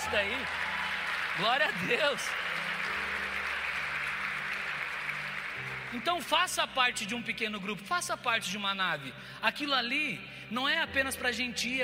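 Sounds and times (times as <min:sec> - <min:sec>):
crowd applauding: 0:00.0 - 0:07.1
speech: 0:00.1 - 0:00.7, 0:01.4 - 0:02.6, 0:05.9 - 0:11.8.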